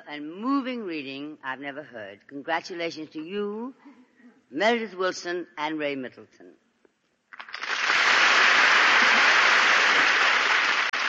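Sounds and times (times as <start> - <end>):
speech: 0.1 - 6.6
audience applause: 7.4 - 11.0.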